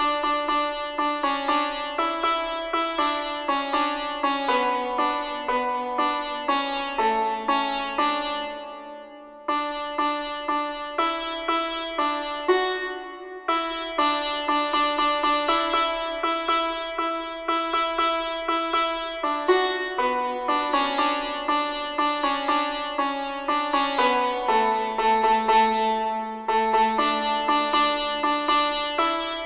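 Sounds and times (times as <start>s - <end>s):
santoor playing: 0.0s - 29.4s.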